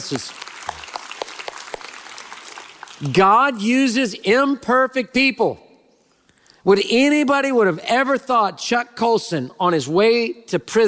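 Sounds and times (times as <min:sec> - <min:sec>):
speech: 0:00.0 - 0:00.5, 0:03.0 - 0:05.6, 0:06.6 - 0:10.8
audience cheering and applauding: 0:00.0 - 0:03.0.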